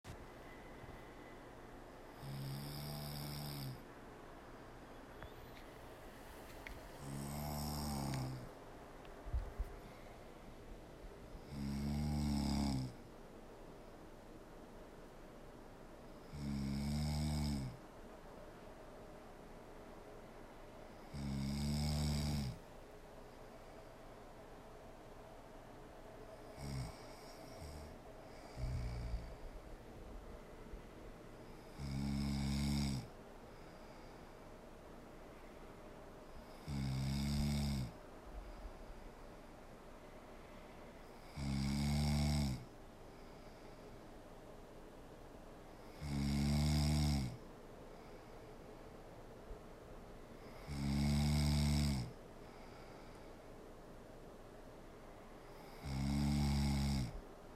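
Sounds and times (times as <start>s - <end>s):
woman snoring: 2.1s - 3.8s, 7.0s - 8.6s, 11.4s - 13.0s, 16.2s - 17.8s, 21.0s - 22.6s, 26.5s - 29.6s, 31.5s - 34.1s, 36.4s - 38.0s, 41.2s - 42.7s, 45.8s - 47.4s, 50.4s - 52.2s, 55.6s - 57.2s.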